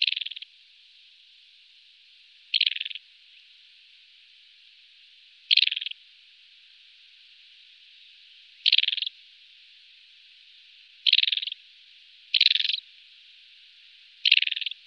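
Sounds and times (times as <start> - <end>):
desert wheatear uttering harsh rattling bursts: 2.5 - 3.0, 5.5 - 5.9, 11.0 - 11.5, 12.3 - 12.8, 14.2 - 14.8.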